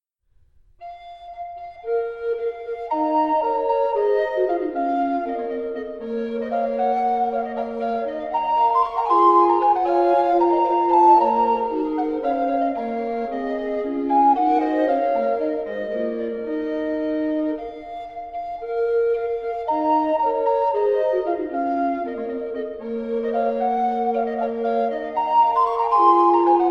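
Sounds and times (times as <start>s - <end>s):
recorder quartet: 1.3s - 26.6s.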